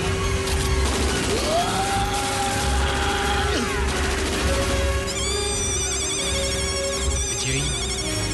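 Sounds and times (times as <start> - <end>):
rapid gunfire sound effects: 0.4 - 5.1
steady electronic beeps: 5.1 - 8.3.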